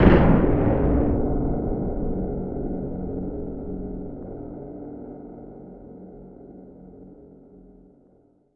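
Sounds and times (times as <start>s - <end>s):
cannon launch: 0.0s - 3.6s.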